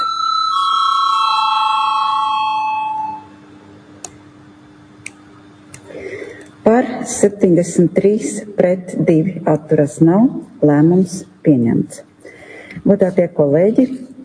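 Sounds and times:
parliamentary voting bell ringing: 0.0s - 3.3s
speech: 6.7s - 12.1s, 12.8s - 14.0s.

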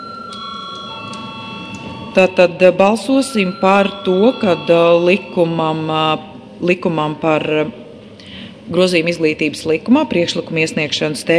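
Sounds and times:
parliament voting bell ringing: 0.0s - 6.2s
speech: 2.1s - 7.8s, 8.7s - 11.3s.

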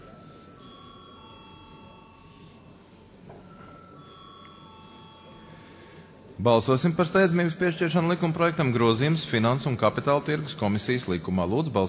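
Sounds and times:
parliament chamber electric bell rung before vote: 0.0s - 7.6s
chatter: 0.0s - 11.8s
speech: 6.4s - 11.8s.

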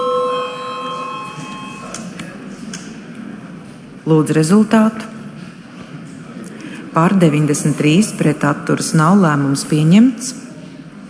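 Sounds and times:
parliamentary voting bell ringing: 0.0s - 2.0s
speech: 4.1s - 5.2s, 7.0s - 10.4s.

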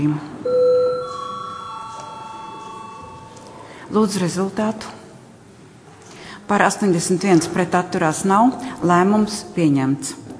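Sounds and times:
speech: 0.0s - 0.6s, 3.9s - 5.0s, 6.5s - 10.3s
parliament chamber electronic bell before voting: 0.4s - 3.5s.

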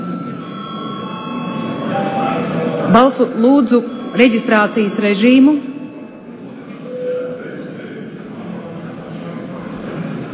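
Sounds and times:
electric parliament session bell ringing: 0.0s - 7.2s
low murmur: 0.0s - 10.3s
speech: 2.9s - 5.7s.

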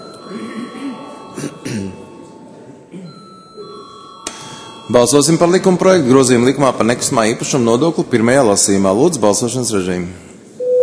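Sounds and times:
chairperson's bell ringing in parliament: 0.0s - 5.9s
speech: 4.9s - 10.3s.

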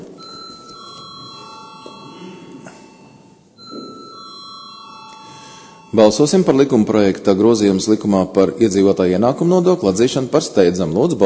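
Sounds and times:
murmur of a crowded chamber: 0.0s - 11.2s
parliament electronic bell signal before vote: 0.1s - 6.9s
speech: 5.9s - 11.2s.

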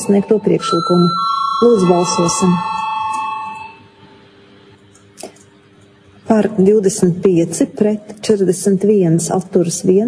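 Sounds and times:
speech: 0.0s - 2.8s, 6.3s - 10.0s
parliament voting electric bell ringing: 0.0s - 4.5s.

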